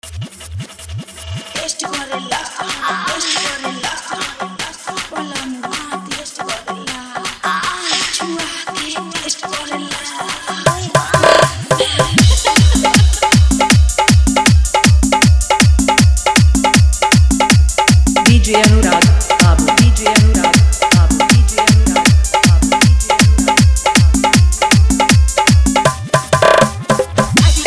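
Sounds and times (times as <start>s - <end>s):
Bhojpuri dholak bass dance mix: 0.0s - 27.6s.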